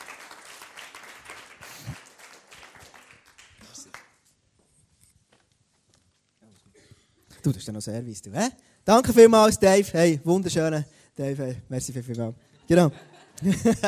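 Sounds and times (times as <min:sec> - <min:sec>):
audience applause: 0:00.0 - 0:04.2
speech: 0:07.4 - 0:13.8
laughter: 0:12.5 - 0:13.8.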